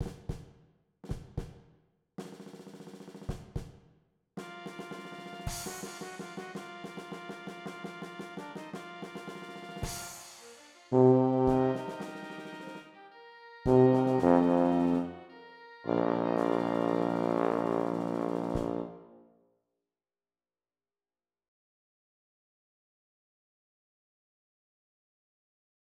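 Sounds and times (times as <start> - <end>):
tuba: 4.4 - 13.0, 13.7 - 15.2, 15.9 - 19.2.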